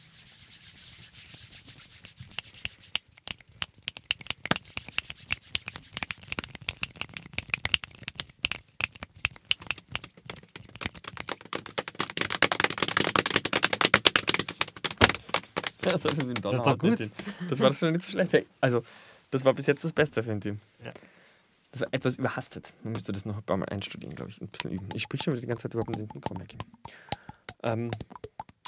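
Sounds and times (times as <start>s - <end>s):
people imitating rain with their hands: 2.3s - 16.2s, 24.6s - 28.6s
speech: 15.9s - 21.0s, 21.8s - 28.1s.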